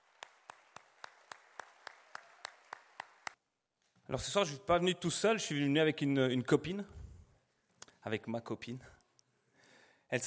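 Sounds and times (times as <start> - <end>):
audience clapping in unison: 0.0 - 3.4
speech: 4.1 - 7.0, 8.0 - 9.0.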